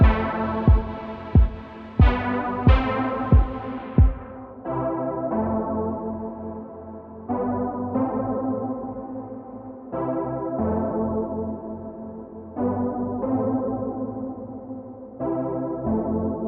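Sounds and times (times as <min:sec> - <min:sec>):
kick drum: 0:00.0 - 0:04.4
synth chords: 0:00.0 - 0:16.4.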